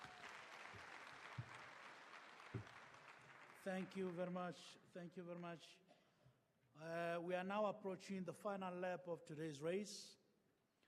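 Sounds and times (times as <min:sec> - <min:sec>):
audience applause: 0:00.0 - 0:04.3
speech: 0:03.6 - 0:05.8, 0:06.8 - 0:10.2.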